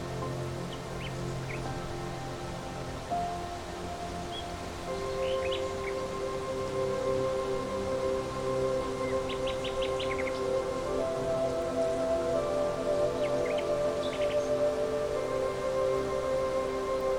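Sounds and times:
gentle hiss: 0:00.0 - 0:17.1
soft relaxing music: 0:00.0 - 0:17.1
bird chirps and trills: 0:04.3 - 0:06.1, 0:09.0 - 0:10.5, 0:13.1 - 0:14.7.

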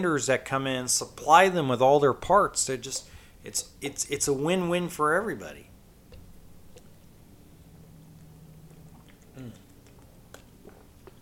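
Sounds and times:
speech: 0:00.0 - 0:05.7
person drinking water: 0:06.1 - 0:11.1.

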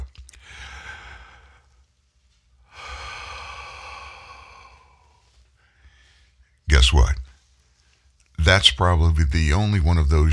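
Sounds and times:
deep breath in and long slow exhale: 0:00.4 - 0:06.6
speech: 0:06.8 - 0:07.2, 0:08.5 - 0:10.3.

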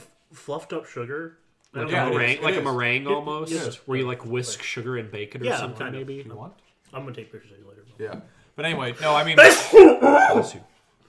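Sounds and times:
speech: 0:00.3 - 0:10.7
loud sneeze: 0:09.4 - 0:10.6.

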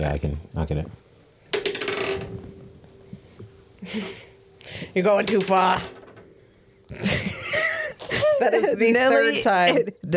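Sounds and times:
speech: 0:00.0 - 0:01.0, 0:03.8 - 0:06.0, 0:06.9 - 0:07.2, 0:08.4 - 0:10.1
dice clattering on a hard surface: 0:01.5 - 0:02.4
faint steady ringing tone: 0:01.6 - 0:09.8
laughter: 0:06.9 - 0:09.6.

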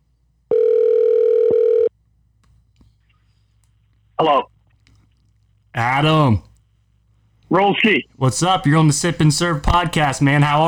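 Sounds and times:
telephone ringing out: 0:00.5 - 0:01.9
speech: 0:04.2 - 0:04.5, 0:05.8 - 0:06.5, 0:07.5 - 0:10.6.

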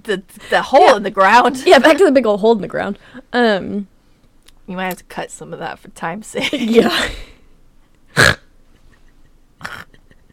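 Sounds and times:
speech: 0:00.0 - 0:03.9, 0:04.7 - 0:07.3, 0:08.2 - 0:08.4
man snorting through the nose: 0:08.1 - 0:08.5, 0:09.6 - 0:10.0.

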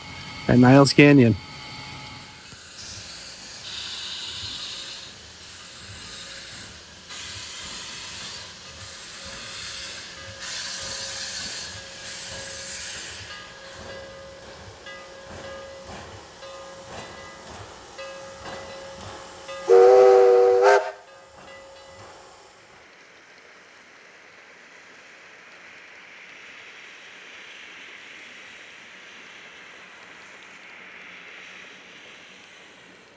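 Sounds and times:
steam locomotive being steamed up, hissing: 0:00.0 - 0:22.8
speech: 0:00.5 - 0:01.5
steam locomotive whistle blast: 0:19.7 - 0:21.0.

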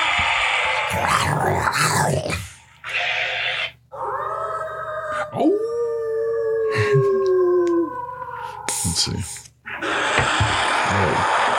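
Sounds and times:
werewolf growling: 0:00.7 - 0:05.6
werewolf howl: 0:00.8 - 0:02.5, 0:03.9 - 0:09.2
speech: 0:01.5 - 0:02.5
laughter: 0:06.7 - 0:07.3, 0:09.7 - 0:11.5.

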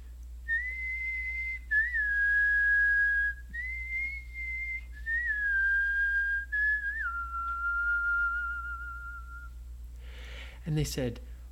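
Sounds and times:
low steady hum: 0:00.0 - 0:11.5
person whistling a bird-like tune: 0:00.5 - 0:09.6
speech: 0:10.7 - 0:11.3.

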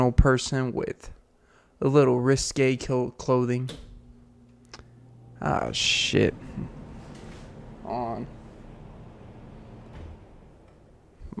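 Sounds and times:
speech: 0:00.0 - 0:01.2, 0:01.8 - 0:03.9, 0:05.4 - 0:06.8, 0:07.9 - 0:08.4
old air conditioning unit running: 0:02.6 - 0:11.3.

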